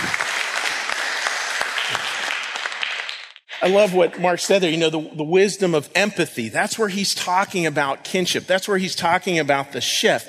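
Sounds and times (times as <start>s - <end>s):
audience applause: 0.0s - 3.9s
speech: 3.6s - 10.2s.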